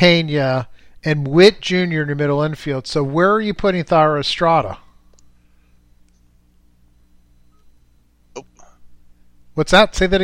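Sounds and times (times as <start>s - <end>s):
speech: 0.0s - 4.8s, 9.6s - 10.2s
low electrical hum: 0.0s - 10.2s
beeps on phone line: 6.9s - 8.3s.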